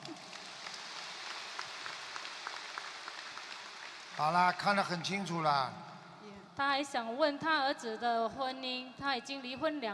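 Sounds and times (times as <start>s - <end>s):
applause: 0.0s - 5.6s
speech: 4.2s - 5.9s, 6.6s - 9.9s.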